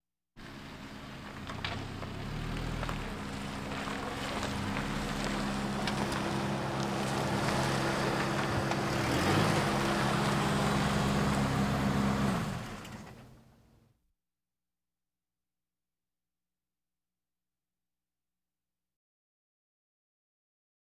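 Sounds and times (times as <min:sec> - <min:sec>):
various automobiles: 0:00.4 - 0:13.8.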